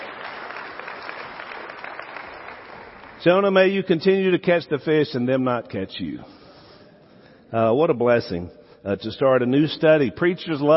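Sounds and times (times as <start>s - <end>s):
audience applause: 0.0s - 3.2s
speech: 3.2s - 6.4s, 7.5s - 10.7s.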